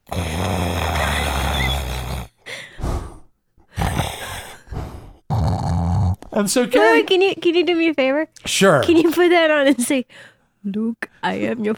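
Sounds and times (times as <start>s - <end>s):
person imitating snoring through a breathing mask: 0.0s - 3.2s, 3.8s - 6.2s
speech: 6.4s - 11.7s.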